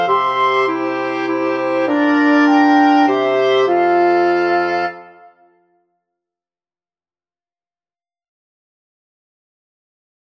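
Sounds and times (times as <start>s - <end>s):
wind quartet playing a Christmas carol: 0.0s - 5.3s.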